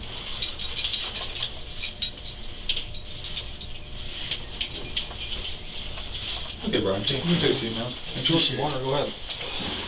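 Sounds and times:
handcuffs being unlocked, clicking and rattling: 0:00.0 - 0:06.7
speech: 0:06.7 - 0:09.7.

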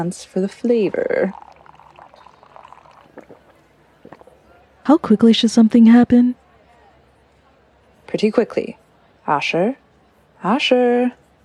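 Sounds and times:
speech: 0:00.0 - 0:01.5, 0:04.8 - 0:06.4, 0:08.1 - 0:09.8, 0:10.4 - 0:11.2
liquid poured into a mouth: 0:00.8 - 0:04.4.

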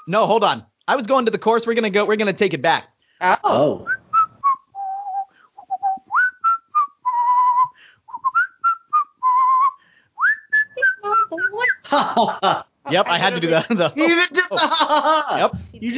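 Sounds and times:
speech: 0:00.1 - 0:03.9, 0:12.2 - 0:15.9
person whistling a tune: 0:03.8 - 0:11.8
laughter: 0:11.6 - 0:15.9.

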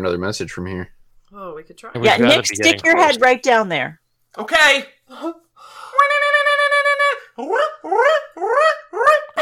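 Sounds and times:
speech: 0:00.0 - 0:06.1
person imitating a barred owl call: 0:06.0 - 0:09.3.

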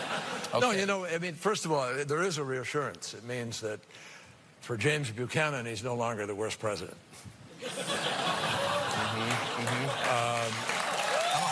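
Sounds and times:
laughter: 0:00.0 - 0:00.5, 0:07.6 - 0:11.0
speech: 0:00.5 - 0:08.3
crowd applauding after a joke: 0:08.6 - 0:11.4.

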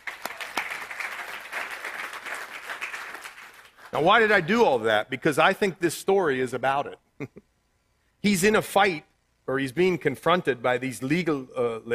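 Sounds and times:
audience applauding: 0:00.0 - 0:04.4
speech: 0:03.9 - 0:07.5, 0:08.2 - 0:11.9.

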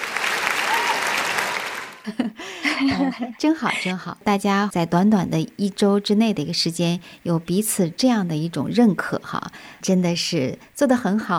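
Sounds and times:
applause: 0:00.0 - 0:02.1
laughter: 0:02.0 - 0:03.9
speech: 0:02.0 - 0:11.3.

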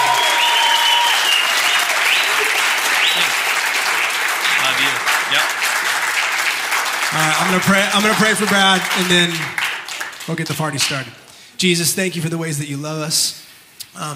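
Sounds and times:
cheers and whoops: 0:00.0 - 0:03.5
large crowd applauding: 0:00.0 - 0:11.1
speech: 0:07.4 - 0:09.6, 0:10.3 - 0:14.1.

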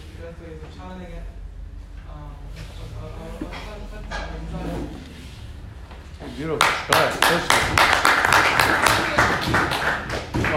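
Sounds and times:
speech: 0:00.3 - 0:01.4, 0:02.1 - 0:05.2, 0:06.2 - 0:10.5
group clapping: 0:06.3 - 0:10.5.

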